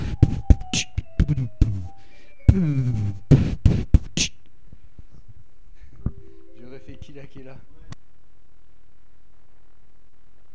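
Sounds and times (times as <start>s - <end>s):
person beatboxing freestyle: 0.0s - 1.8s, 2.5s - 4.4s.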